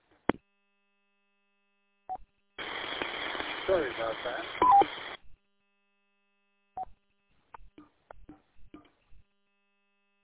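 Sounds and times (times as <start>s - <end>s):
radio roger beep: 3.0s - 5.1s
speech: 3.7s - 5.0s.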